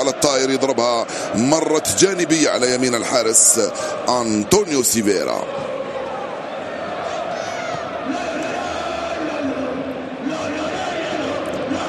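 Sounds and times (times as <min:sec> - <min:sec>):
football stadium crowd chanting: 0:00.0 - 0:11.8
speech: 0:00.2 - 0:05.8.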